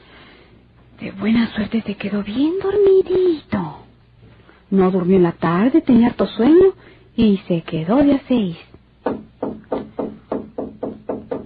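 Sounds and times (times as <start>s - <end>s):
speech: 1.0s - 3.8s, 4.7s - 8.7s
knocking on a door at night: 9.0s - 11.4s.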